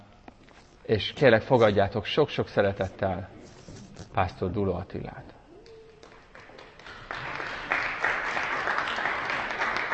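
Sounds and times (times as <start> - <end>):
speech: 0.9 - 3.4, 4.2 - 5.4
audience applause: 6.0 - 9.9.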